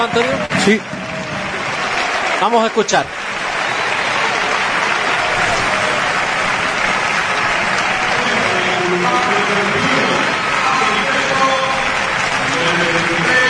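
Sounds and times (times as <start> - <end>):
stadium crowd applause: 0.0 - 13.4
speech: 0.1 - 1.0, 2.4 - 3.2, 8.9 - 10.4.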